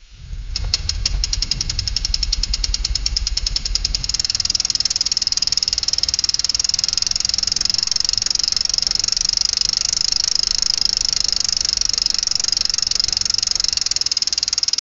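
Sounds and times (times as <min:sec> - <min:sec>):
bike: 0:00.0 - 0:14.8.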